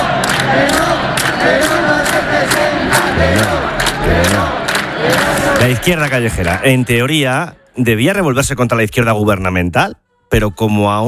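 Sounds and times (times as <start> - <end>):
raised voices: 0.0 - 7.1
rhythmic claps: 0.0 - 7.2
large protest crowd chanting slogans: 0.0 - 7.8
speech: 5.8 - 11.0.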